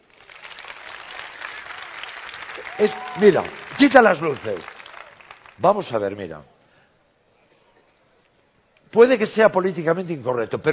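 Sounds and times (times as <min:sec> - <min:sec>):
audience applause: 0:00.0 - 0:05.9
speech: 0:02.8 - 0:04.7, 0:05.6 - 0:06.5, 0:08.9 - 0:10.7.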